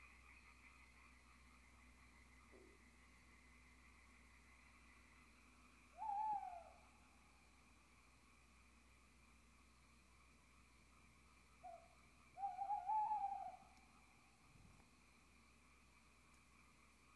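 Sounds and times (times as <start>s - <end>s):
quiet background hiss: 0.0s - 17.1s
owl hooting: 5.9s - 6.9s, 11.6s - 13.9s.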